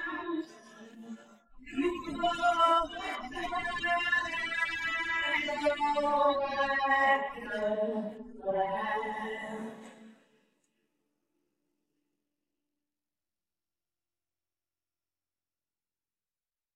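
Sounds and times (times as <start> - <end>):
vocals: 0.0 - 10.4.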